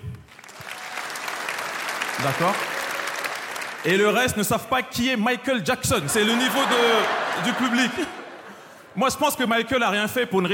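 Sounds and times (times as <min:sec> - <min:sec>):
audience applause: 0:00.0 - 0:04.3, 0:06.1 - 0:08.2
speech: 0:02.2 - 0:02.7, 0:03.8 - 0:08.2, 0:09.0 - 0:10.5
laughter: 0:05.9 - 0:09.0.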